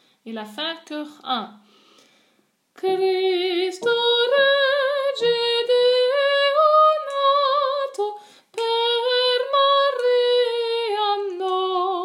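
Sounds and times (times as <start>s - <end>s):
tenor singing a carol: 2.8s - 12.0s.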